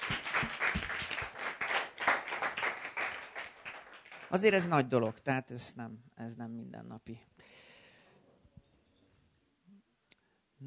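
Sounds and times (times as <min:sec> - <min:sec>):
audience clapping: 0:00.0 - 0:05.2
speech: 0:04.3 - 0:07.4.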